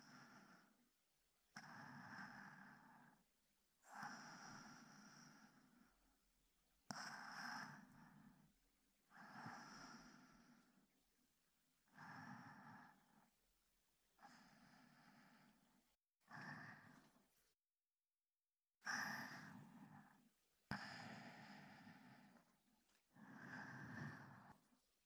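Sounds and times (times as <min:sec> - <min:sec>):
breath loop on left recorded with binaural microphone: 0:00.0 - 0:00.9, 0:01.5 - 0:06.1, 0:06.9 - 0:08.5, 0:09.1 - 0:10.9, 0:11.9 - 0:13.4, 0:14.2 - 0:17.1, 0:18.9 - 0:24.7.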